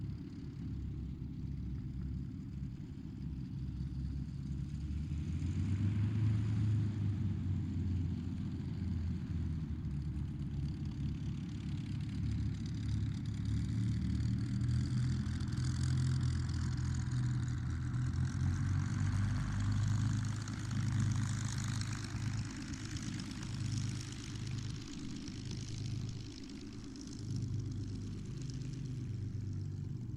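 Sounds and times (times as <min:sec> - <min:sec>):
distant Supermarine Spitfire Mk-XVI aircraft taxiing: 0:00.0 - 0:30.1.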